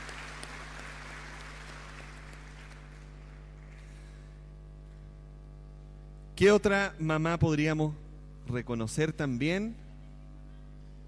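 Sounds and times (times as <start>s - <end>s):
applause for mothers: 0.0s - 4.4s
speech: 6.4s - 9.8s.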